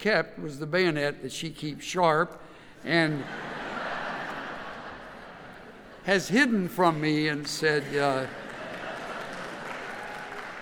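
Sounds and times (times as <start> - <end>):
speech: 0.0 - 3.6, 6.0 - 8.4
laughter: 2.9 - 10.3
faint audience applause: 7.7 - 10.6.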